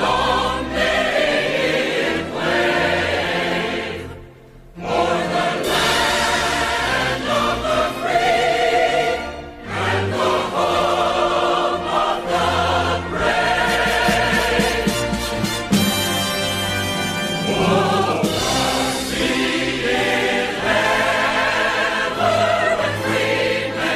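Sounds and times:
anthem music: 0.0 - 23.9.

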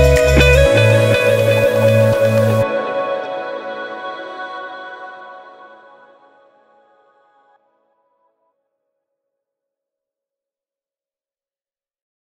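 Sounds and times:
chillout music: 0.0 - 5.7.

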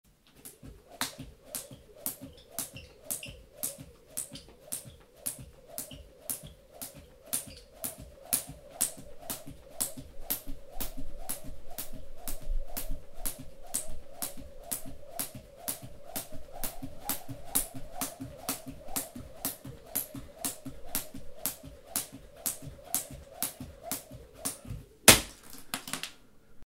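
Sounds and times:
jump rope: 0.4 - 25.4.

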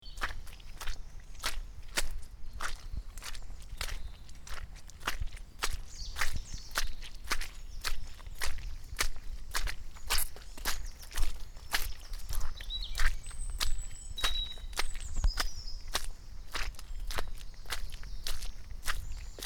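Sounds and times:
footsteps in a swamp: 0.0 - 19.4.

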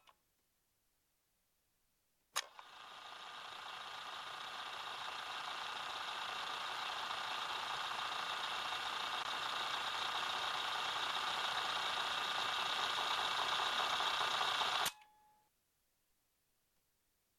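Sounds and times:
cassette tape rewinding: 2.4 - 15.0.

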